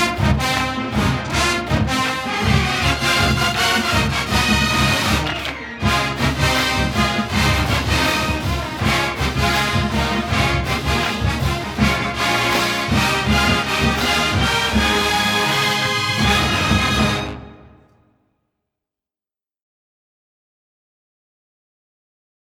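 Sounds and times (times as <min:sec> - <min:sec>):
fight song: 0:00.0 - 0:18.0.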